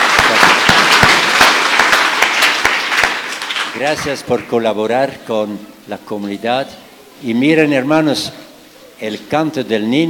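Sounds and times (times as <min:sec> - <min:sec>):
audience applauding: 0:00.0 - 0:04.6
speech: 0:03.8 - 0:10.0.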